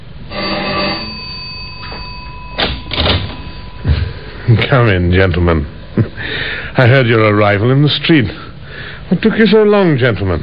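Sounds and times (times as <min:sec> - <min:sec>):
doorbell ringing: 0:00.3 - 0:05.0
speech: 0:04.6 - 0:10.4.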